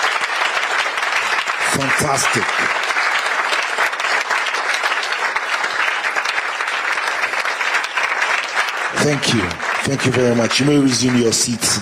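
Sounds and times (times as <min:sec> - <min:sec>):
standing ovation applause from a large crowd: 0:00.0 - 0:11.7
speech: 0:01.8 - 0:02.9, 0:09.0 - 0:11.7.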